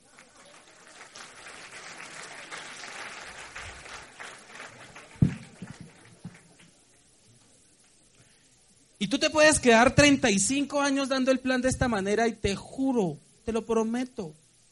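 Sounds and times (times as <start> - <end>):
audience applause: 0.0 - 6.8
speech: 9.0 - 14.4.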